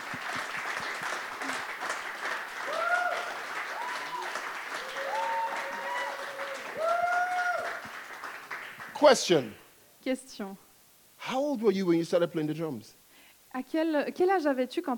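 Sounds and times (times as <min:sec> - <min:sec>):
audience applause: 0:00.0 - 0:09.4
speech: 0:09.0 - 0:10.6, 0:11.2 - 0:14.9.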